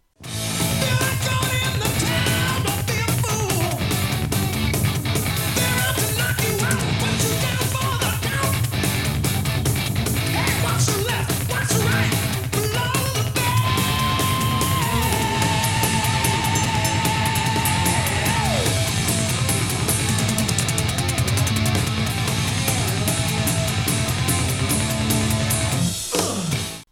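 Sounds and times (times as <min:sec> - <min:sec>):
pounding drums: 0:00.2 - 0:26.8
thrash-metal-like hard rock track: 0:00.2 - 0:26.8
heavy distorted guitars: 0:00.2 - 0:26.9
shouted vocals: 0:00.8 - 0:03.8, 0:05.5 - 0:08.6, 0:10.3 - 0:18.9.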